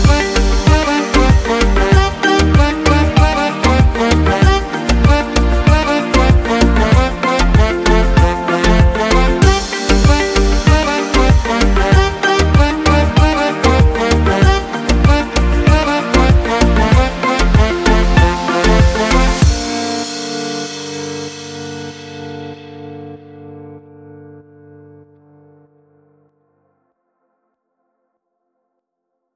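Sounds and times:
Spanish Latin reggaeton music: 0.0 - 21.5.

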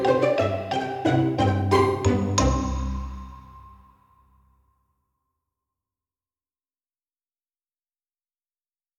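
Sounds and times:
cheerful entertainment pizzicato strings: 0.0 - 3.8.

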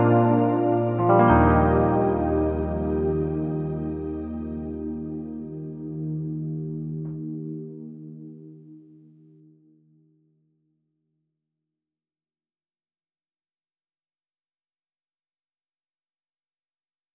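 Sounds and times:
power ballad: 0.0 - 7.7.

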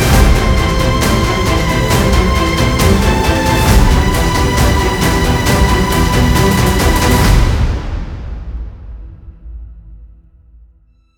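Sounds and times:
tense violin: 0.0 - 8.6.

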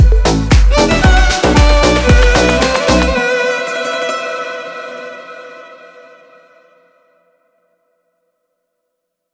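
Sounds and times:
deep house music: 0.0 - 5.1.

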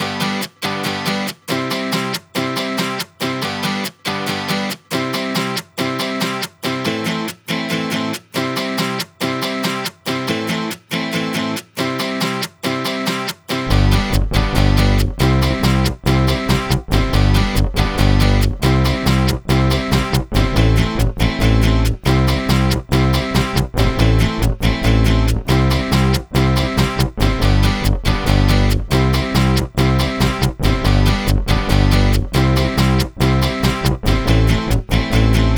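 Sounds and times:
cheerful guitar comping: 0.0 - 35.5.

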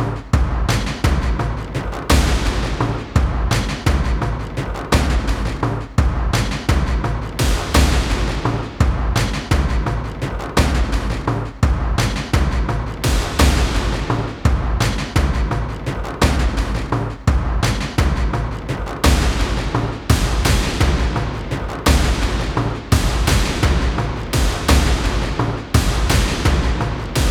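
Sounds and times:
cinematic tension drum composition: 0.0 - 27.2.

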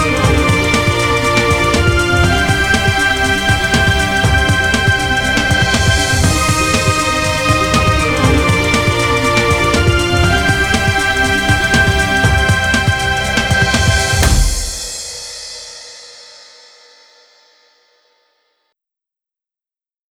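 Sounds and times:
news music: 0.0 - 16.0.

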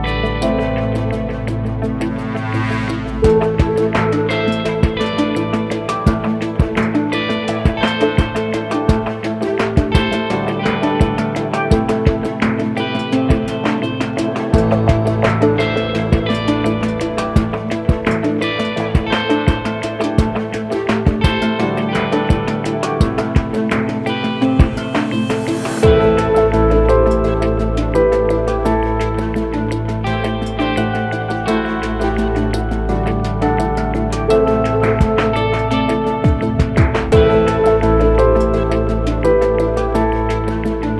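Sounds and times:
tense guitar music: 0.0 - 40.9.

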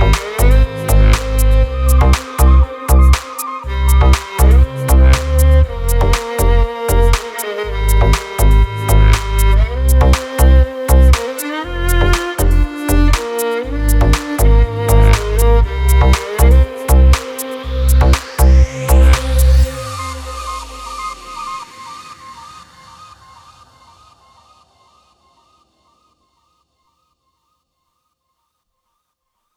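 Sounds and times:
deep house music: 0.0 - 22.6.

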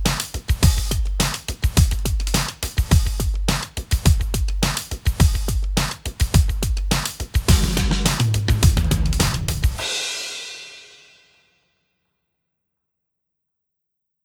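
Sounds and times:
80s drum compilation: 0.0 - 11.4.

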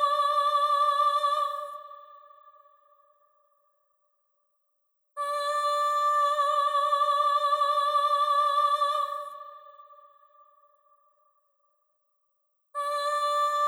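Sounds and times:
cinematic vocal composition: 0.0 - 3.6, 5.2 - 11.2, 12.8 - 13.6.

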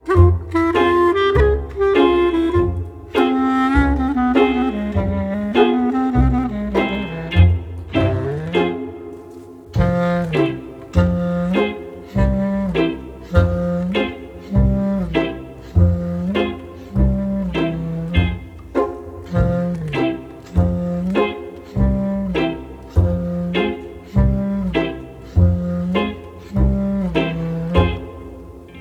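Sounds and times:
sweet acoustic guitar pizzicato: 0.0 - 28.8.

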